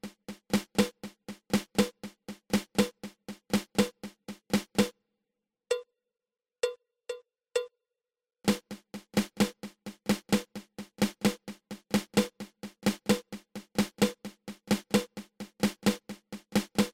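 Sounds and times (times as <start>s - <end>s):
drum rudiment patafla fla: 0.0s - 4.9s, 8.5s - 16.9s.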